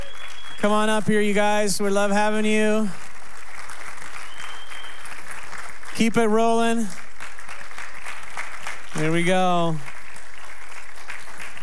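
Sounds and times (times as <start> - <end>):
audience clapping: 0.0 - 11.6
speech: 0.6 - 3.0, 6.0 - 7.0, 9.0 - 9.9.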